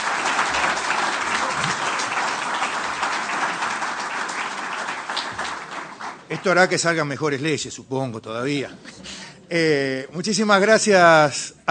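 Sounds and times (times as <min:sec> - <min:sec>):
audience applause: 0:00.0 - 0:06.8
speech: 0:06.3 - 0:11.6.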